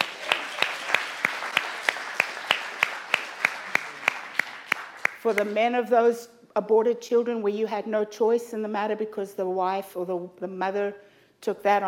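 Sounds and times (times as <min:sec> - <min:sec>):
audience clapping: 0:00.0 - 0:05.6
speech: 0:05.2 - 0:11.8.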